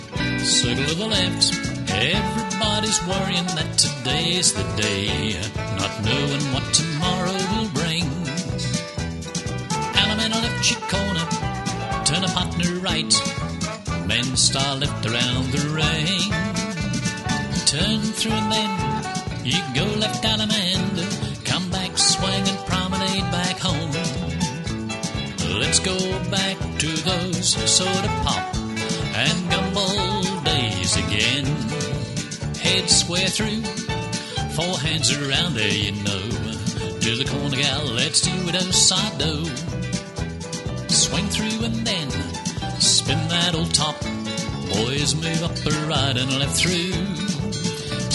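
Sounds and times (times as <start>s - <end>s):
vocals: 0.2s - 48.1s.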